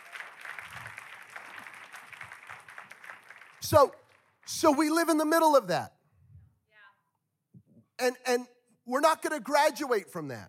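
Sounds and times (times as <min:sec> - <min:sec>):
audience clapping: 0:00.0 - 0:05.3
speech: 0:03.6 - 0:06.0, 0:08.0 - 0:10.4.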